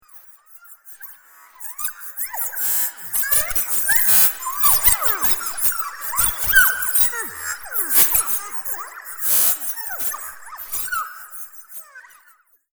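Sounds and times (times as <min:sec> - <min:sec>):
alien robot communication: 0:02.0 - 0:11.2.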